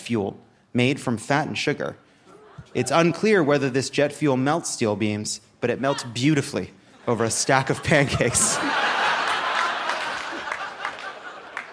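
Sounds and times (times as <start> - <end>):
speech: 0.0 - 2.0, 2.7 - 9.0
laughter: 2.3 - 3.9, 5.8 - 11.7
audience applause: 8.4 - 11.7.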